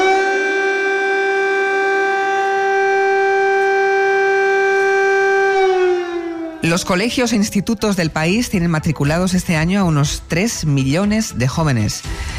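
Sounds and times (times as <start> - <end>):
air raid siren wailing: 0.0 - 9.7
speech: 6.8 - 12.3.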